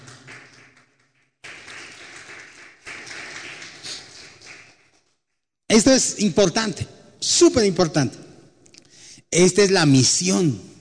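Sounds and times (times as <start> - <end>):
audience applause: 0.0 - 4.8
speech: 5.7 - 8.2, 9.3 - 10.7.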